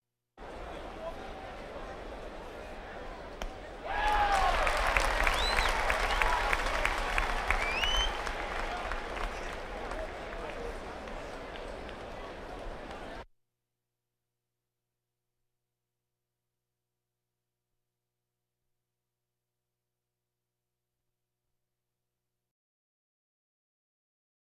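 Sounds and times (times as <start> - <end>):
crowds: 0.4 - 13.2.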